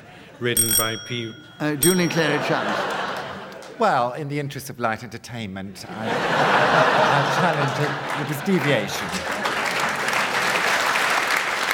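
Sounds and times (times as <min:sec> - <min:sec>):
speech: 0:00.4 - 0:02.9, 0:03.8 - 0:09.4
laughter: 0:02.0 - 0:03.9, 0:05.9 - 0:10.5
comedy panel game studio audience clapping: 0:02.2 - 0:03.8, 0:07.1 - 0:11.7.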